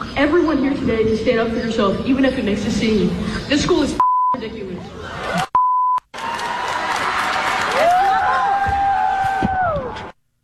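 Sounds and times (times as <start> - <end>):
speech: 0.2 - 4.6
audience cheering after a speech: 6.1 - 10.2.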